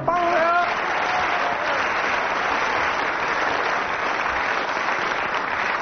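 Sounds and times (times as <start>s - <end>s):
audience applause: 0.1s - 5.8s.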